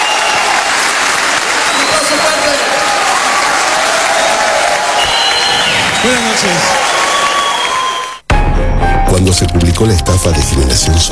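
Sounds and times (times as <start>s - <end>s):
audience applause: 0.0s - 8.3s
speech: 6.0s - 7.0s, 9.2s - 11.1s.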